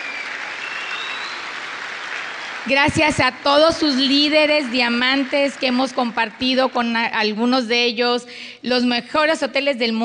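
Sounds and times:
loud audience applause: 0.0 - 6.8
speech: 2.6 - 10.0.

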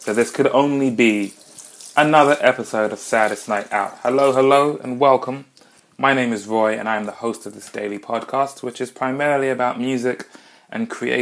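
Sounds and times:
speech: 0.0 - 1.4, 2.0 - 11.2
kitchen tap running while washing dishes: 0.0 - 4.7.

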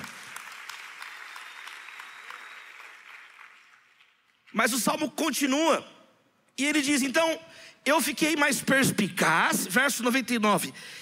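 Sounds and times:
audience applause: 0.0 - 4.2
speech: 4.5 - 6.0, 6.6 - 10.9.

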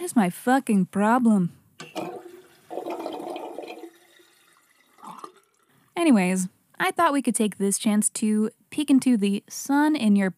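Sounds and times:
speech: 0.1 - 1.6, 6.0 - 10.3
flushing water: 1.8 - 5.8.

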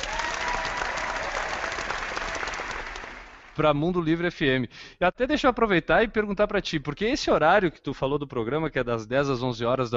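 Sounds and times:
applause: 0.0 - 3.6
speech: 3.6 - 9.9.

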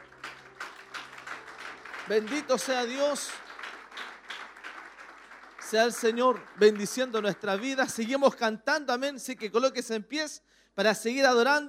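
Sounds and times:
audience clapping in praise: 0.0 - 8.4
speech: 2.1 - 3.4, 5.7 - 11.6.

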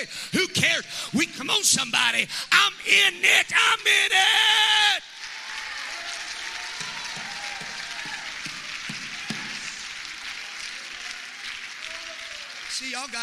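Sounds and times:
speech: 0.0 - 5.0, 12.9 - 13.2
light half-hearted clapping: 5.2 - 13.2.

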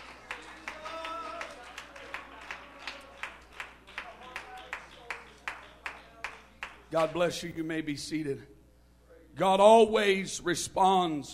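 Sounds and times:
audience clapping hands in a rhythmic beat: 0.0 - 7.3
speech: 6.9 - 8.6, 9.4 - 11.3.

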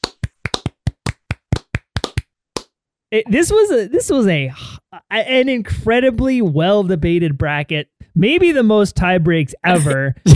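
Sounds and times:
hosts clapping: 0.0 - 2.7
speech: 3.1 - 10.3.

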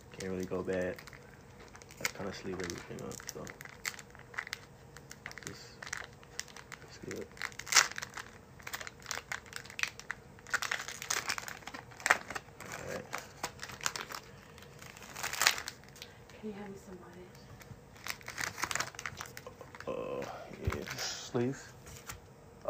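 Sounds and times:
trading card pack plastic wrapper crinkling: 0.0 - 20.0, 20.6 - 21.1
trading card pack wrapper tearing: 0.1 - 16.1, 17.9 - 19.9
speech: 0.2 - 1.2, 2.0 - 3.7, 5.5 - 5.7, 7.1 - 7.4, 20.2 - 21.8.

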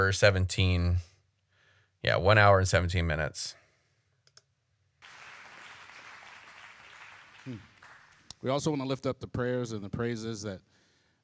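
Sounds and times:
speech: 0.0 - 1.1, 2.0 - 3.6, 7.4 - 7.7, 8.4 - 10.7
soft clicks: 4.2 - 4.5
audience clapping: 5.0 - 8.4.

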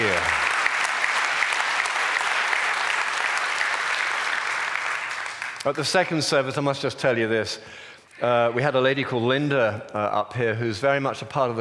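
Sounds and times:
audience clapping: 0.0 - 6.0
speech: 5.6 - 11.6.

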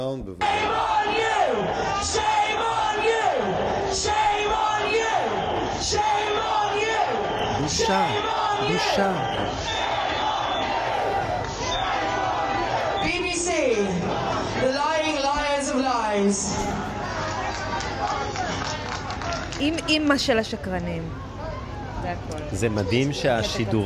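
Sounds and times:
speech: 0.0 - 10.0, 16.2 - 17.0, 19.6 - 21.3, 22.1 - 23.8
protesters shouting and chanting outside the BBC building: 0.4 - 19.3.

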